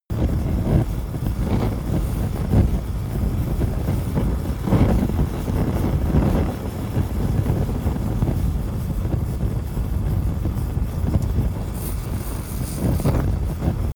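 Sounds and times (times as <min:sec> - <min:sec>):
medium fire burning an object: 0:00.1 - 0:13.9.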